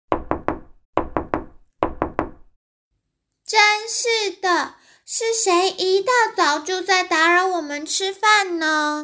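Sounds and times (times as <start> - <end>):
urgent knocking on a door: 0.1 - 2.6
speech: 3.5 - 9.0.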